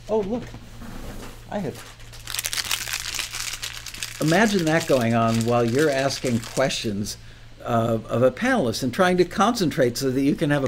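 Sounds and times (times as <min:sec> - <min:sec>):
speech: 0:00.1 - 0:00.8, 0:01.5 - 0:02.0, 0:04.2 - 0:10.6
crinkly plastic bag being rummaged through: 0:02.0 - 0:06.7.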